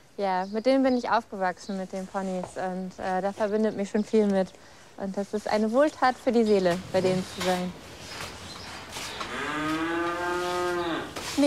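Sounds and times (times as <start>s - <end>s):
speech: 0.2s - 7.9s
cow mooing: 9.3s - 11.2s.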